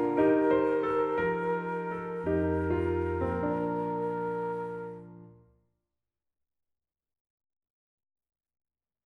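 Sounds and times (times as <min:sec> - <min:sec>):
flute transposition demo: 0:00.0 - 0:05.5.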